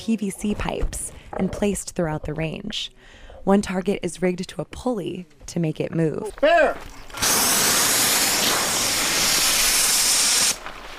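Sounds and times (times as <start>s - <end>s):
speech: 0.0s - 7.4s
bear pepper spray canister spraying: 7.1s - 10.6s.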